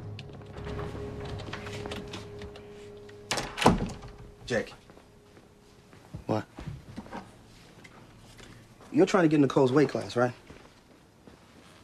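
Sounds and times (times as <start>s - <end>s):
dorm room door shutting: 0.4s - 4.4s
speech: 4.5s - 4.8s, 9.0s - 10.4s.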